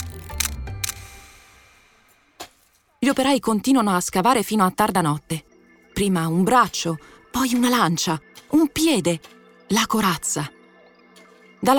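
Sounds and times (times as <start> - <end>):
camera shutter clicking as photos are taken of a bronze statue head: 0.0 - 1.4
speech: 3.1 - 10.6, 11.6 - 11.7.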